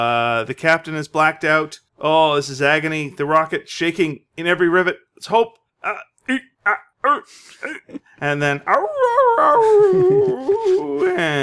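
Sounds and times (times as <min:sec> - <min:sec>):
speech: 0:00.0 - 0:11.4
dog howling: 0:08.7 - 0:11.4.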